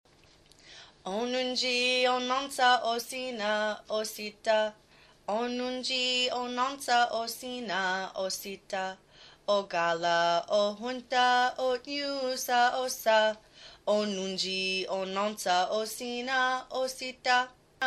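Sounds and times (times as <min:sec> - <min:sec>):
children's song: 0:01.0 - 0:17.8.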